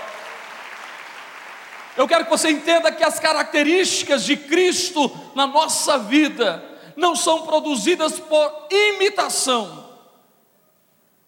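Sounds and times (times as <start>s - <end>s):
audience applause: 0.0s - 2.1s
speech: 2.0s - 9.9s.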